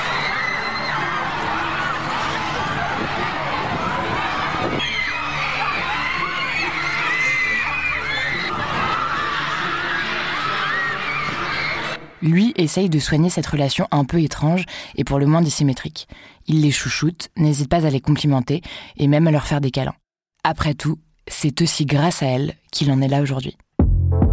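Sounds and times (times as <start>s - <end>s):
crowd of teenage girl fans screaming and shrieking: 0.0s - 12.2s
speech: 12.2s - 24.3s.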